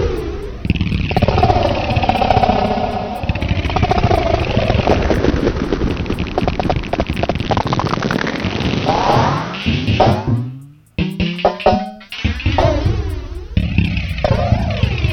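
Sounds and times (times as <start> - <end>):
drum with long reverb effect: 0.0 - 15.1.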